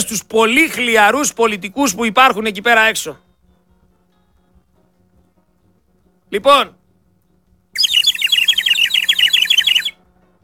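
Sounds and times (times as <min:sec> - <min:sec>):
speech: 0:00.0 - 0:03.3, 0:06.3 - 0:06.8
chirping bird whistle: 0:07.8 - 0:10.0.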